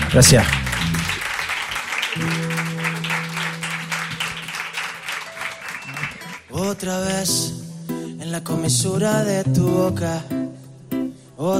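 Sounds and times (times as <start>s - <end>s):
crowd applause: 0.0s - 6.5s
speech: 0.1s - 0.6s, 2.2s - 2.4s, 6.6s - 7.6s, 8.3s - 10.6s, 11.4s - 11.5s.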